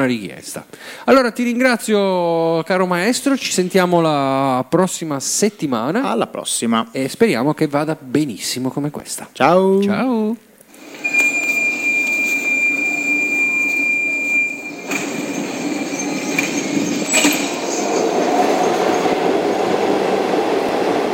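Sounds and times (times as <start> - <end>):
speech: 0.0 - 10.5
subway train running: 10.8 - 21.1.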